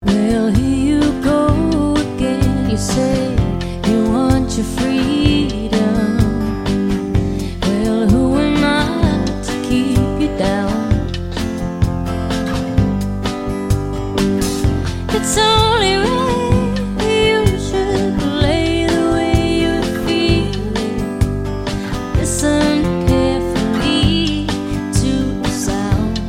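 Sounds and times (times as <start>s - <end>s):
acoustic music: 0.0s - 26.2s.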